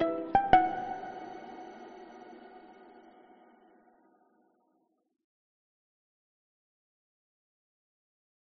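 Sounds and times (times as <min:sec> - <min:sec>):
violin cover of a Christmas carol: 0:00.0 - 0:03.0.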